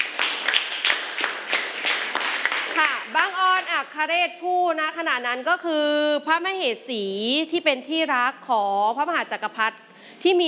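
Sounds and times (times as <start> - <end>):
audience rhythmic clapping for group one: 0.0 - 4.0
speech: 3.9 - 10.4.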